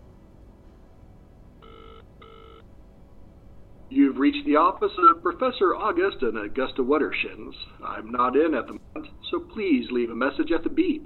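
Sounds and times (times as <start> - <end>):
low hiss: 0.0 - 11.0
telephone ringing on the line: 1.6 - 2.6
speech: 3.9 - 11.0.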